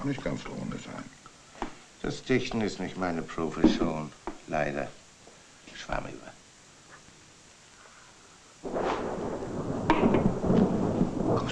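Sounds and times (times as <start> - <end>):
speech: 0.0 - 1.2, 2.0 - 5.0, 5.8 - 6.4
thunder rumbling during a thunderstorm: 8.6 - 11.5.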